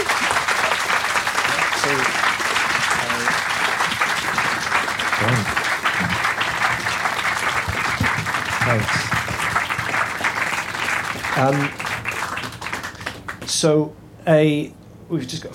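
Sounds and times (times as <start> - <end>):
faint voices murmuring: 0.0 - 6.9
crowd applause: 0.0 - 13.5
speech: 11.4 - 11.8, 13.6 - 15.5.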